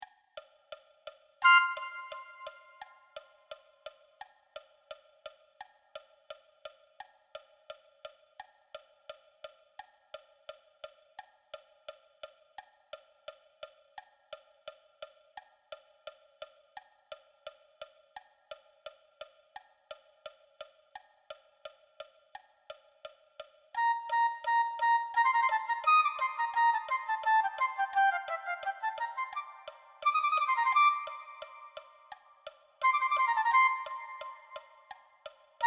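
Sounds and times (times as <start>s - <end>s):
flute: 1.4s - 3.2s, 23.8s - 35.6s.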